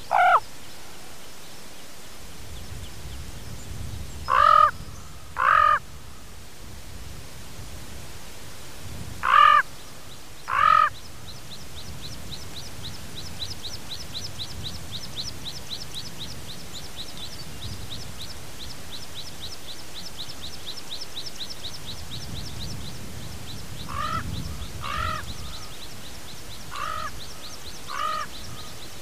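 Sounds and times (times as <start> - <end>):
common raven flight calls with reverberance: 0.0 - 0.5, 4.3 - 5.9, 9.2 - 9.7, 10.4 - 11.0, 23.8 - 25.8, 26.7 - 28.8.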